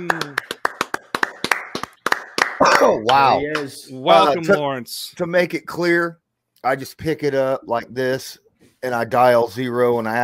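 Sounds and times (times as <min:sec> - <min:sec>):
hand clapping: 0:00.0 - 0:03.8
speech: 0:02.8 - 0:10.2.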